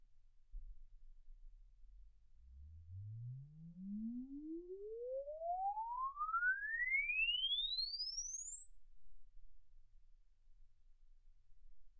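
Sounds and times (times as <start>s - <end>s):
exponential sine sweep from 10 Hz to 24 kHz: 2.6s - 9.9s.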